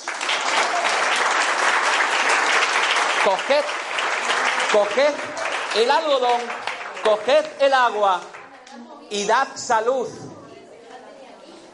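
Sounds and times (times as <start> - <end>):
applause: 0.0 - 8.5
speech: 3.2 - 3.8, 4.7 - 10.3.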